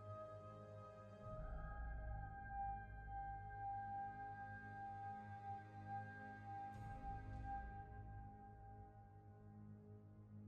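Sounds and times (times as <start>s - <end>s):
ambient piano music: 0.0s - 10.3s.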